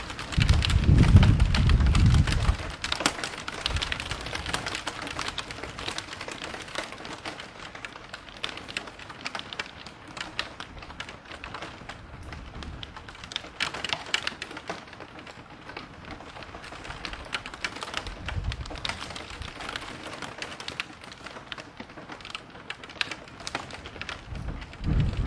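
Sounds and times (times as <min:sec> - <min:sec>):
thunder: 0:00.0 - 0:04.8, 0:24.0 - 0:25.2
rain in a city: 0:00.0 - 0:25.2.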